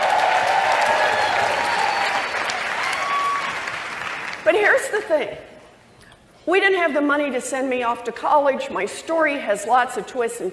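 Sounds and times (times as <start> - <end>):
scattered cheers: 0.0 - 3.8
convention audience applauding: 0.0 - 4.5
speech: 5.0 - 5.5, 6.4 - 10.5.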